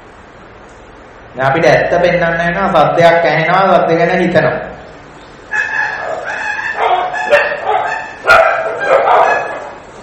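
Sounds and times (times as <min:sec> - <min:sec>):
speech: 0:01.4 - 0:04.7
dogs fighting and barking: 0:05.4 - 0:10.0.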